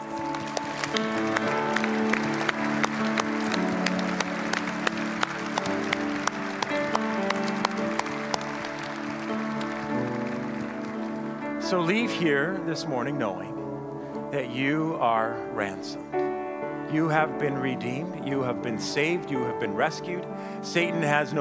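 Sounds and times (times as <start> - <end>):
audience applause: 0.0 - 12.6
speech: 11.7 - 13.5, 14.3 - 21.3.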